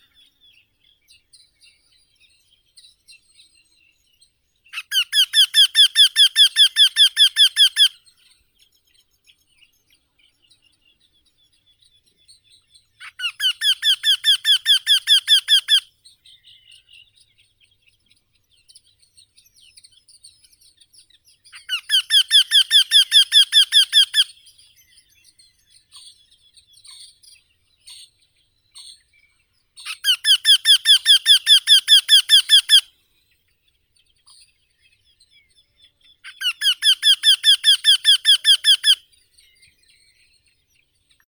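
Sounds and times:
Eurasian wryneck Jynx torquilla calling: 4.8s - 8.0s, 13.1s - 15.8s, 21.7s - 24.3s, 29.9s - 32.9s, 36.3s - 39.0s.

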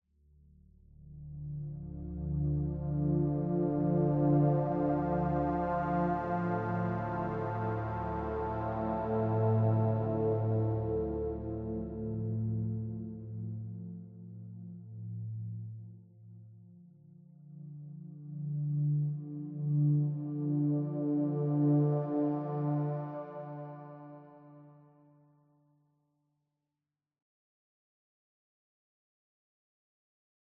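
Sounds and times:
ambient music: 0.8s - 15.9s, 17.0s - 25.0s.

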